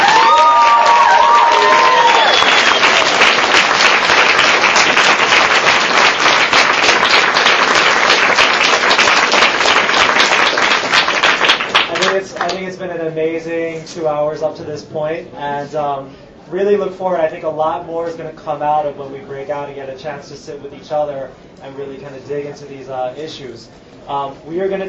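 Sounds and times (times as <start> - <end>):
audience applause: 0.0 - 12.5
speech: 13.9 - 24.8.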